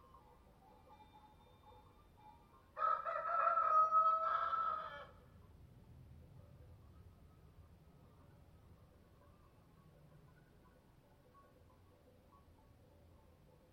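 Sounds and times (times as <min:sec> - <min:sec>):
rooster crowing cock-a-doodle-doo: 0:02.8 - 0:05.2.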